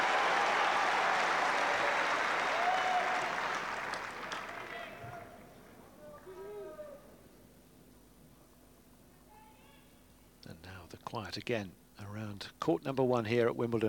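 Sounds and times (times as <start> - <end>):
tennis crowd cheering and applauding: 0.0 - 5.4
speech: 10.9 - 13.8.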